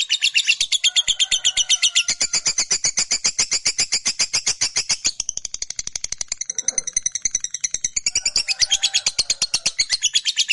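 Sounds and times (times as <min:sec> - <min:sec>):
lovebird chattering: 0:00.0 - 0:10.5.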